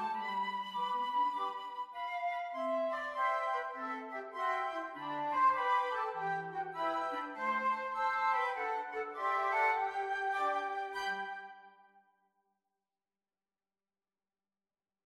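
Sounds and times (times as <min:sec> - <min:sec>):
flute choir: 0:00.0 - 0:12.0.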